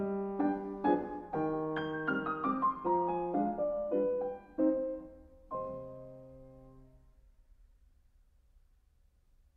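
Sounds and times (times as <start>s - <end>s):
piano mazurka in C minor: 0.0s - 7.4s.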